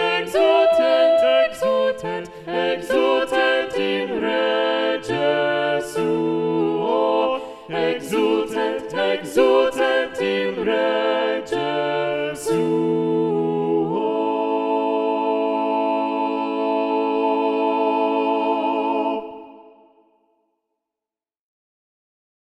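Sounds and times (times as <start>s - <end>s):
SATB choir singing with balanced voices: 0.0s - 20.2s.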